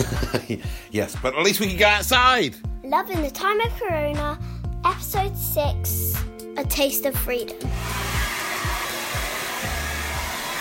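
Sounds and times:
laughter: 0.0s - 0.6s
speech: 0.0s - 8.1s
hair dryer blowing hair with motor whine: 7.7s - 10.6s.

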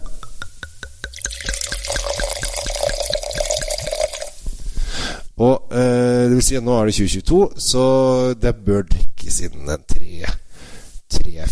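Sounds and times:
wine dripping: 0.0s - 4.5s
wine pouring from a bottle into a glass: 0.4s - 4.4s
speech: 5.4s - 10.4s, 11.2s - 11.5s.

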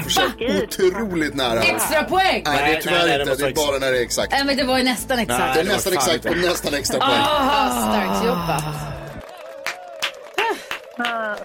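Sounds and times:
laughter: 0.0s - 2.4s, 5.4s - 9.4s, 10.3s - 11.4s
speech: 0.1s - 9.0s
person applauding: 7.0s - 11.4s.

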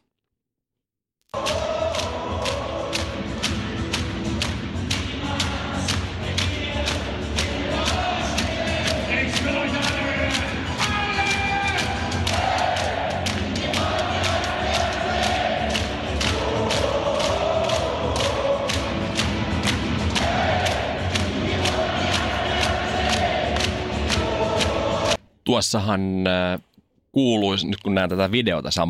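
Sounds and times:
massive arena crowd roaring and chanting: 1.3s - 25.2s
rhythmic thumps: 1.4s - 25.2s
speech: 25.5s - 28.8s.

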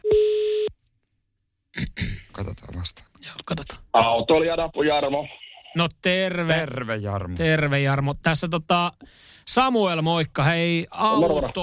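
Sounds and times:
telephone ringing tone while calling a help number for motoring questions: 0.0s - 0.7s
speech: 2.4s - 11.6s.

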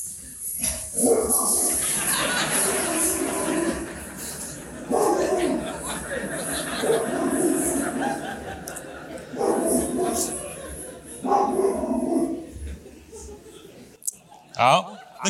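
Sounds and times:
rottweiler barking: 1.0s - 8.4s, 9.2s - 12.5s
laughter: 1.2s - 15.2s.

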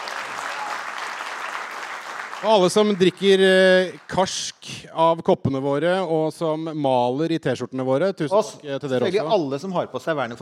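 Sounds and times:
audience applauding: 0.0s - 4.3s
speech: 2.4s - 10.4s.

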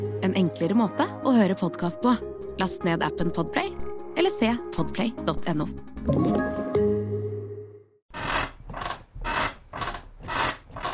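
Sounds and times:
speech: 0.2s - 6.6s
bed creaking: 8.1s - 10.9s.

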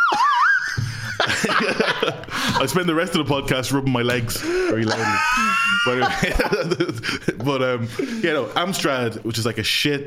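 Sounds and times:
slide whistle: 0.0s - 0.7s
laughter: 0.0s - 3.0s, 4.8s - 8.6s
speech: 1.4s - 10.0s.

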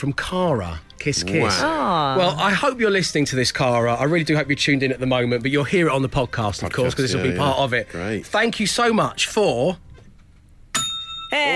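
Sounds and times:
speech: 0.0s - 9.9s, 11.3s - 11.5s
desk bell ding: 10.7s - 11.5s.

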